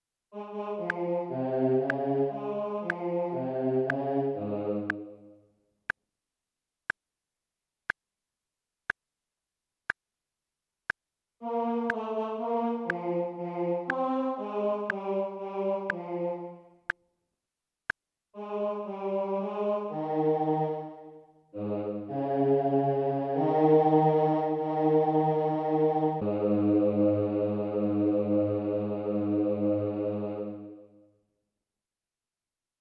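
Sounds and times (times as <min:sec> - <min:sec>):
choral anthem: 0:00.3 - 0:05.4, 0:11.4 - 0:16.9, 0:18.3 - 0:31.0.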